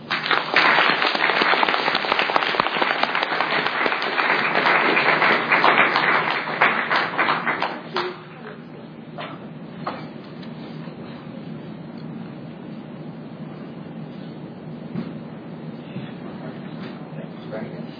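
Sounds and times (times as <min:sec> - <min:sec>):
audience applause: 0:00.0 - 0:08.4.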